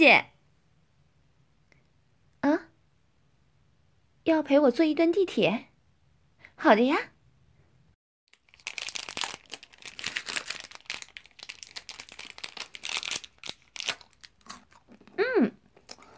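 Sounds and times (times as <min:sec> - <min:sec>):
speech: 0:00.0 - 0:00.3, 0:04.2 - 0:05.7, 0:06.6 - 0:07.1
chewing crunchy food: 0:08.3 - 0:16.1.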